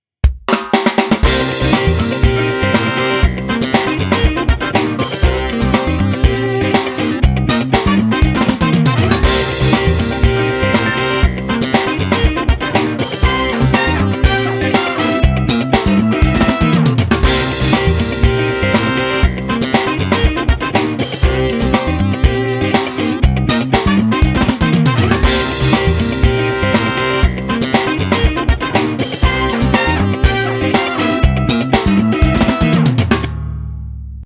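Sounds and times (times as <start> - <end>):
funk music: 0.5 - 34.2.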